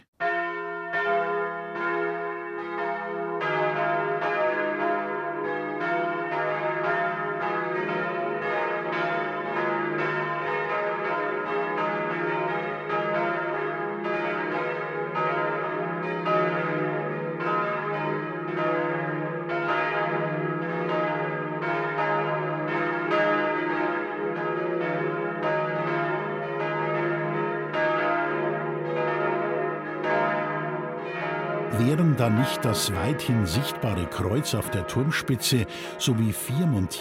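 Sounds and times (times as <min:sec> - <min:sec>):
church bells of St. Peter und Paul in Kaufbeuren ringing the noon peal: 0:00.2 - 0:37.0
speech: 0:31.9 - 0:37.0.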